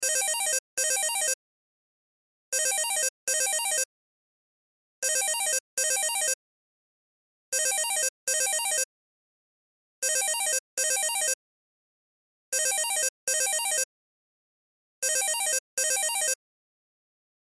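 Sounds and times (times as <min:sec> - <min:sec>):
cell phone ringtone: 0:00.0 - 0:01.4, 0:02.6 - 0:03.9, 0:05.0 - 0:06.4, 0:07.6 - 0:08.9, 0:10.0 - 0:11.4, 0:12.6 - 0:13.9, 0:15.0 - 0:16.4.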